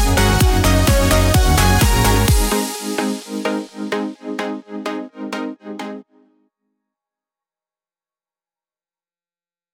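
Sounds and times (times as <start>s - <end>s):
raid dungeon music: 0.0s - 6.3s.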